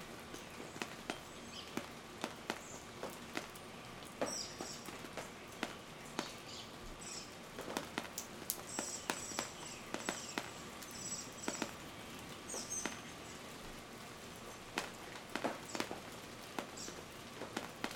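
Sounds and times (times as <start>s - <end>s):
rain dripping: 0.0s - 17.9s
birds: 0.3s - 7.4s, 8.5s - 13.6s, 16.6s - 17.1s.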